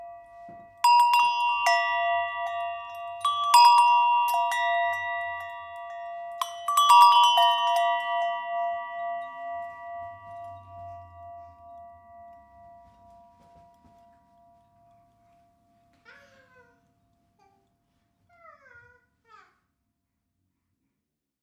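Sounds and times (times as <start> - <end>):
bells: 0.0 - 16.6.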